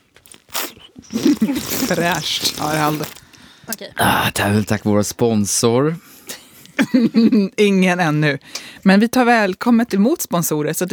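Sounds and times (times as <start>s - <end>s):
person drinking water, gulping: 0.2s - 3.3s
speech: 1.1s - 6.1s, 6.8s - 10.9s
laughter: 6.8s - 7.5s.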